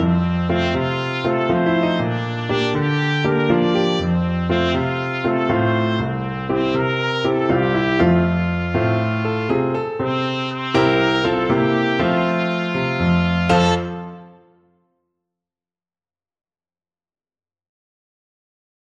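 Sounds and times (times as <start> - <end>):
trumpet duet: 0.0 - 14.4.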